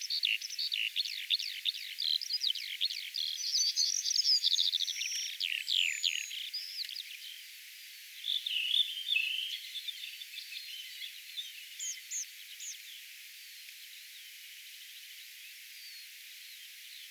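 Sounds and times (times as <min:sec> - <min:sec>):
Redwing singing high thin whistled notes: 0:00.0 - 0:07.4, 0:08.3 - 0:13.0.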